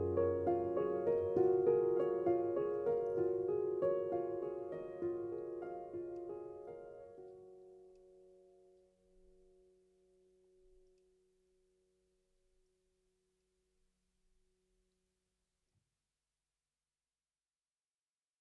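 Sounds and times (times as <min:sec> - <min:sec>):
piano piece: 0:00.0 - 0:09.7.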